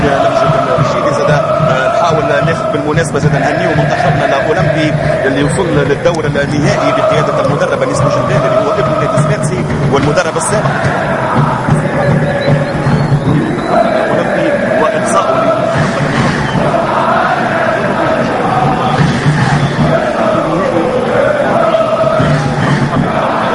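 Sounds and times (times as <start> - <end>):
football crowd chanting at the Taieb Mhiri stadium during a match: 0.0 - 23.5
speech: 5.5 - 8.6, 10.2 - 12.2.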